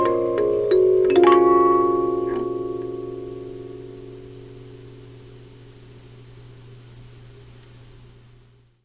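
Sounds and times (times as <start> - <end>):
50-note music box: 0.0 - 4.0.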